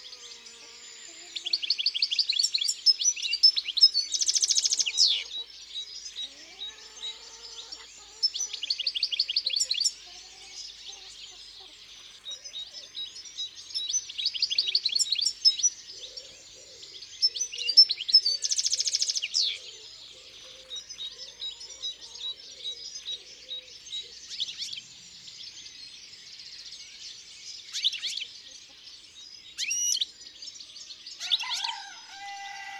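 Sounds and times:
European goldfinch song: 0.0s - 32.6s.

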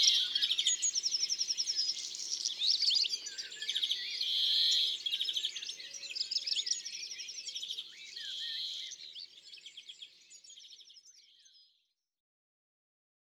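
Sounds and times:
European greenfinch song: 0.0s - 12.2s.

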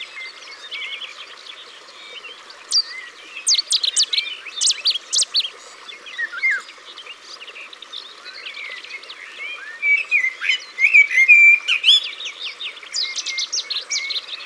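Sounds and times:
Cetti's warbler song: 0.0s - 14.4s
scattered chirps from other birds: 2.6s - 6.3s.

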